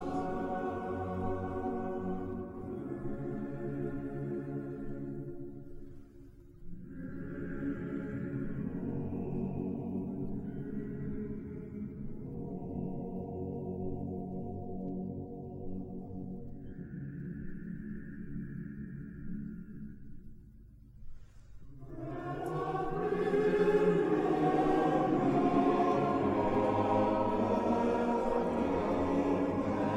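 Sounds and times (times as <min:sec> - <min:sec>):
male choir singing: 0:00.0 - 0:05.5, 0:06.9 - 0:14.2, 0:21.8 - 0:29.9.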